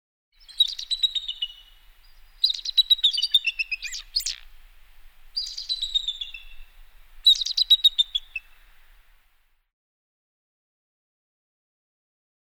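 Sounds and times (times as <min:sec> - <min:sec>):
bird song trills: 0:00.4 - 0:09.1.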